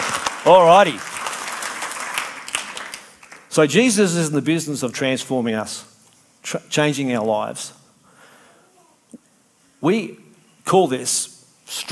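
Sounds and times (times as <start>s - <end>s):
audience clapping: 0.0s - 3.6s
speech: 0.5s - 1.1s, 3.6s - 7.8s, 9.8s - 11.8s.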